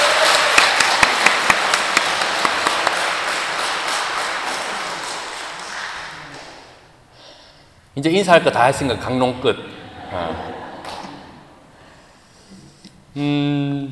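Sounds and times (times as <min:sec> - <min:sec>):
congregation applause at a church service for guests visiting from abroad: 0:00.0 - 0:06.8
speech: 0:08.0 - 0:10.6, 0:13.2 - 0:13.8
laughter: 0:09.6 - 0:11.7.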